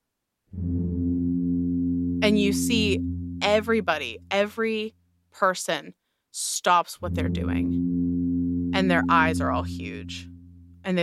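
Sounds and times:
siren wailing: 0:00.6 - 0:04.4, 0:07.0 - 0:10.9
speech: 0:02.2 - 0:07.8, 0:08.8 - 0:11.0.

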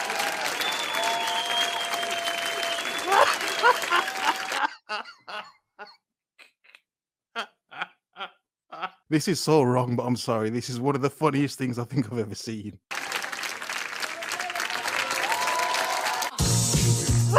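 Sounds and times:
audience clapping: 0:00.0 - 0:05.0, 0:12.9 - 0:17.0
laughter: 0:02.9 - 0:05.9
speech: 0:09.1 - 0:12.9.

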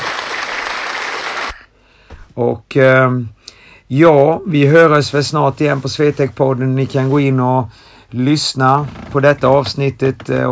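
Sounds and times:
applause: 0:00.0 - 0:01.7
speech: 0:02.4 - 0:10.5.

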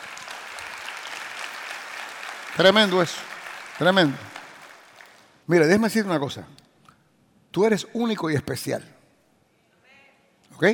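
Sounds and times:
audience applauding: 0:00.0 - 0:05.4
speech: 0:02.5 - 0:04.4, 0:05.5 - 0:06.6, 0:07.6 - 0:09.0, 0:10.6 - 0:10.7.

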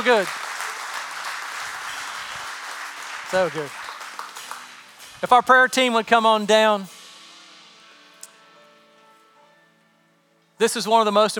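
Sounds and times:
speech: 0:00.0 - 0:00.5, 0:03.3 - 0:03.8, 0:05.2 - 0:07.0, 0:10.6 - 0:11.3
church audience clapping: 0:00.0 - 0:05.7.

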